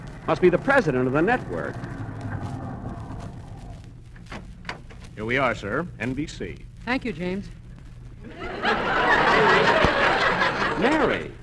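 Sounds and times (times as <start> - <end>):
car driving in and pulling up: 0.0 - 4.0
speech: 0.3 - 2.0, 5.2 - 7.6, 8.2 - 10.0, 10.8 - 11.4
laughter: 8.2 - 11.4.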